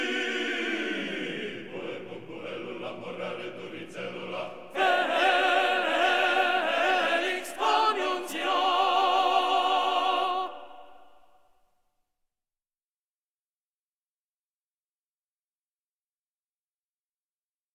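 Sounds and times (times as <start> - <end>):
tenor singing: 0.0 - 11.1.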